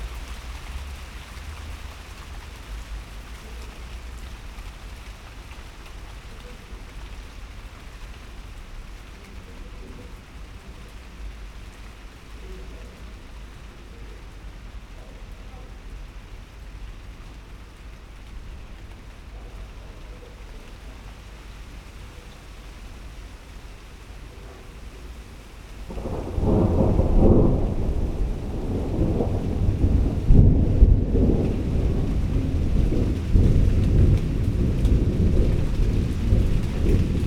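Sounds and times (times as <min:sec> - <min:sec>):
rain: 0:00.0 - 0:37.2
thunderstorm: 0:25.8 - 0:37.2.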